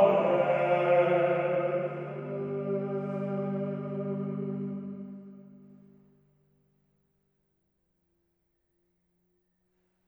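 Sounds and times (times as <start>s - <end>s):
schola choir singing a vespers hymn: 0.0s - 5.5s.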